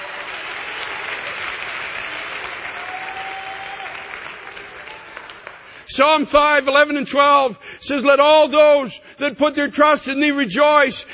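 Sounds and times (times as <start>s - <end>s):
audience clapping hands: 0.0s - 5.9s
speech: 6.0s - 11.1s.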